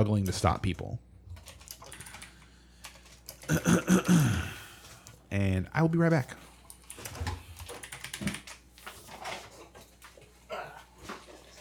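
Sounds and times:
speech: 0.0 - 1.1, 3.5 - 4.6, 5.3 - 6.4
typing on a computer keyboard: 1.4 - 3.5, 6.7 - 8.6.

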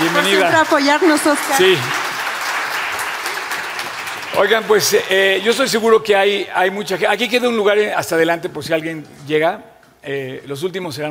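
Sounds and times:
audience applause: 0.0 - 5.5
speech: 0.1 - 2.0, 4.3 - 11.0.

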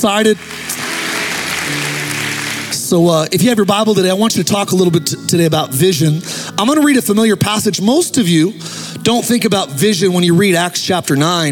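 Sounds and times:
speech: 0.0 - 0.6, 1.7 - 2.0, 2.9 - 11.4
audience hand clapping: 0.0 - 2.8.

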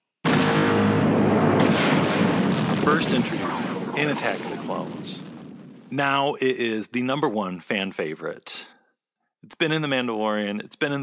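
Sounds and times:
Star Wars seismic charge explosion sound effect with roaring rumble: 0.3 - 6.5
speech: 3.0 - 5.2, 5.9 - 8.7, 9.4 - 11.0.

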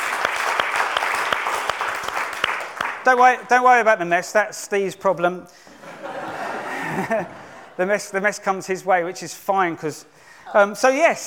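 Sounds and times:
audience applause: 0.0 - 3.1
speech: 3.1 - 6.0, 7.0 - 11.2
laughter: 5.7 - 7.8.

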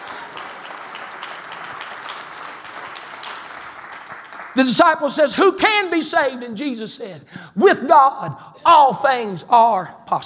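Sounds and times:
audience clapping hands: 0.0 - 5.2
speech: 4.6 - 10.2.

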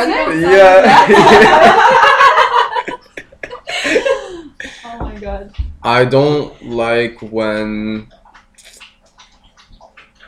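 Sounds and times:
speech: 0.0 - 2.1, 5.4 - 8.2
laughter: 0.2 - 4.8
person sipping and gulping water: 6.4 - 10.2.

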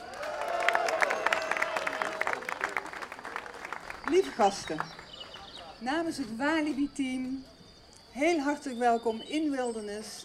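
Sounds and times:
audience applause at a theme park coaster opening: 0.0 - 5.5
speech: 4.1 - 5.0, 5.8 - 7.5, 8.2 - 10.2.

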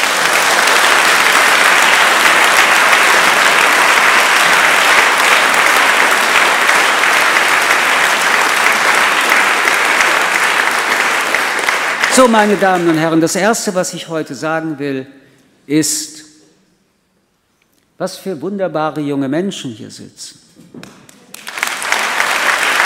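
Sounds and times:
audience applause: 0.0 - 13.2, 20.8 - 22.8
speech: 12.2 - 16.2, 18.0 - 21.0.

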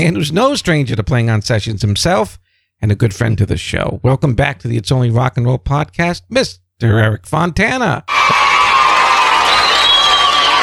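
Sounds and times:
speech: 0.0 - 8.2
crowd of children cheering and shouting: 8.1 - 10.6.

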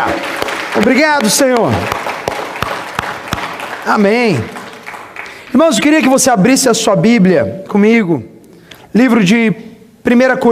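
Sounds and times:
speech: 0.0 - 2.0, 3.9 - 4.6, 5.5 - 8.3, 8.9 - 10.5
audience applauding with unison claps on a steady beat: 0.0 - 6.2.

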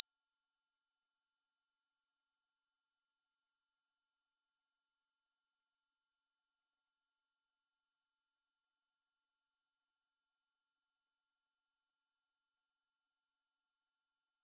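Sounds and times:
5789 Hz pure sine tone: 0.0 - 14.4.

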